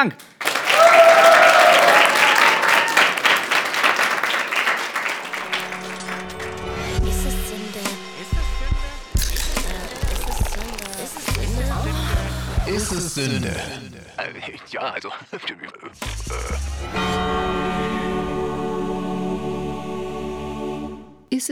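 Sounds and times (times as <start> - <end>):
speech: 0.0 - 0.3, 12.9 - 17.4
large audience applause: 0.0 - 6.8
music: 5.4 - 13.1, 16.0 - 21.3.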